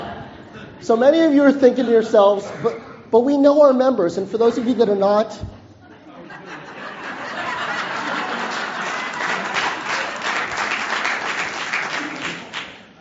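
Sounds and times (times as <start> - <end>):
laughter: 0.0 - 0.8, 5.8 - 12.6
speech: 0.8 - 5.6
crowd applause from an audience at a realtors' association gathering: 6.8 - 12.9.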